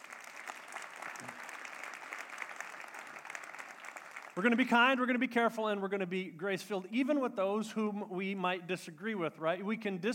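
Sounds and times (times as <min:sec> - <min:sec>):
audience clapping: 0:00.0 - 0:04.6
speech: 0:04.4 - 0:10.1.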